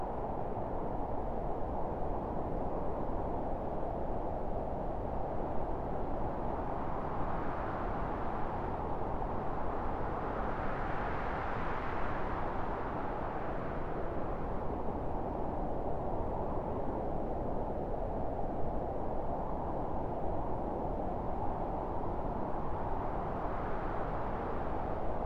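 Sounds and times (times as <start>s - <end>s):
wind: 0.0s - 25.2s.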